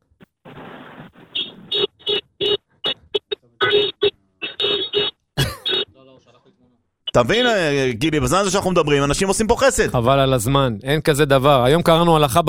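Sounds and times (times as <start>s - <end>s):
car horn honking: 1.4s - 2.6s, 3.6s - 5.9s
speech: 7.2s - 12.4s.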